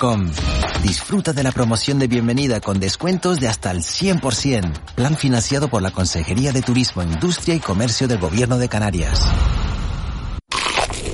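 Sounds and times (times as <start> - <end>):
speech: 0.0 - 9.8
crispy fried chicken being bitten and crunching: 10.5 - 11.1.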